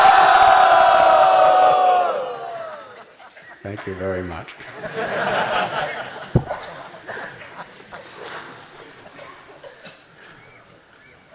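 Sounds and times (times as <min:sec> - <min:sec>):
festival crowd loudly chanting: 0:00.0 - 0:03.0
laughter: 0:02.4 - 0:10.9
speech: 0:03.7 - 0:06.1.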